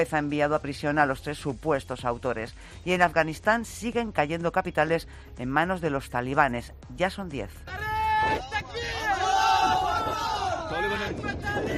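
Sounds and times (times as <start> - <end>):
speech: 0.0 - 8.5, 10.9 - 11.7
soldiers shouting battle cries: 7.7 - 11.7.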